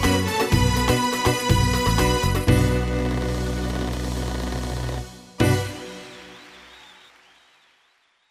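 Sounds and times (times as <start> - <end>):
Ketron Vega EX keyboard playing: 0.5 - 6.4.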